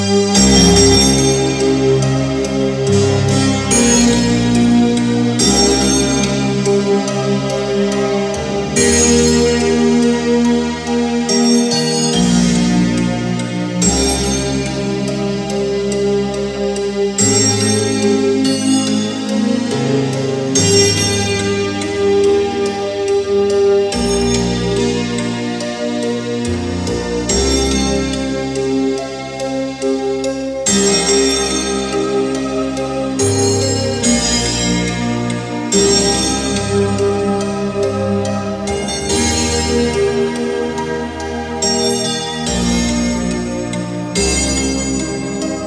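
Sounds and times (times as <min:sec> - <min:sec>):
instrumental music: 0:00.0 - 0:45.6.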